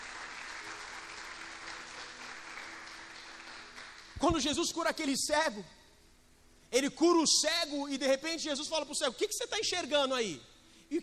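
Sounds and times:
church audience applauding: 0.0s - 4.5s
speech: 4.2s - 5.8s, 6.7s - 11.0s.

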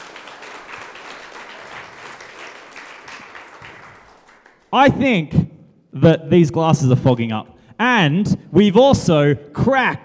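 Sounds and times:
audience applause: 0.0s - 4.7s
speech: 4.7s - 10.0s.

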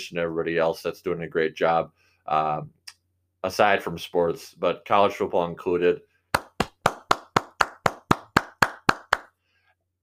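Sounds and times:
speech: 0.0s - 2.8s, 3.4s - 6.1s
round of applause, hand clapping: 6.3s - 9.4s.

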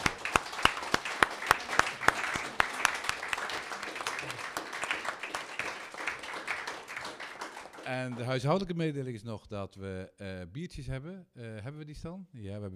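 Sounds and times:
audience applause: 0.0s - 8.5s
speech: 7.9s - 12.7s.

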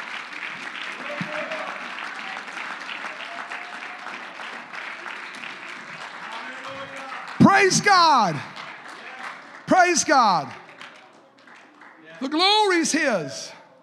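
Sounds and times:
audience clapping: 0.0s - 13.4s
speech: 7.6s - 8.5s, 9.7s - 10.6s, 12.2s - 13.6s.

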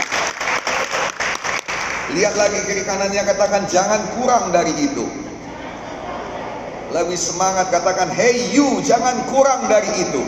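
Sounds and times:
audience applause: 0.0s - 2.2s
speech: 2.1s - 5.2s, 6.9s - 10.2s.

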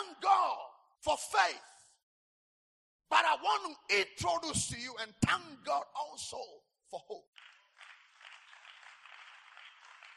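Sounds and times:
speech: 1.0s - 1.7s, 3.1s - 7.5s
weak audience clapping: 7.3s - 10.1s.

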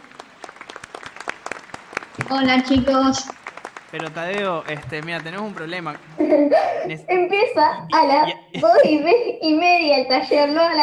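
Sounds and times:
applause: 0.0s - 6.4s
speech: 2.2s - 10.8s
laughter: 4.0s - 7.1s, 7.9s - 9.4s.

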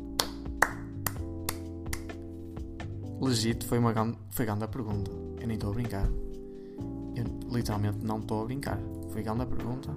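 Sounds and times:
hand clapping: 0.0s - 2.2s
speech: 3.2s - 9.9s.

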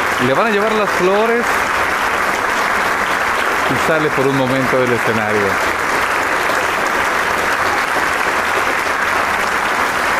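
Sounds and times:
large audience applause: 0.0s - 10.1s
speech: 0.2s - 1.7s, 3.7s - 5.8s.

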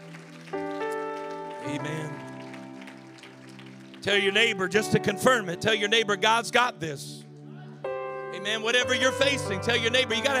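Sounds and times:
audience clapping hands in praise: 0.0s - 5.4s
speech: 1.7s - 2.3s, 4.0s - 7.2s, 8.4s - 10.3s.

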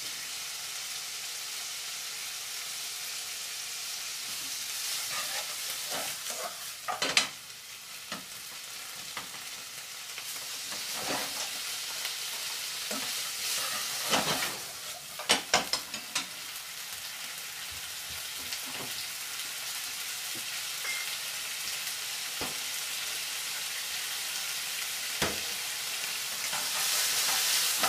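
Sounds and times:
pork and onions stir-frying in yakiniku sauce: 0.0s - 27.8s
utensil clacking and scraping against the pan: 4.8s - 7.1s, 10.7s - 11.6s, 12.9s - 15.0s.

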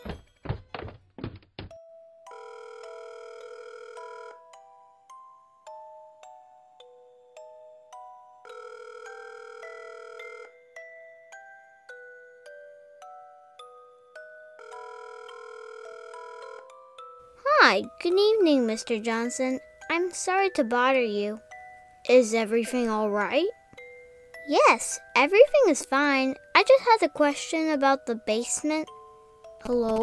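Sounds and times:
dull thumps: 0.0s - 1.8s
telephone ringing on the line: 2.3s - 4.6s, 8.4s - 10.8s, 14.6s - 17.0s
speech: 17.7s - 23.6s, 24.5s - 29.0s, 29.6s - 30.0s.

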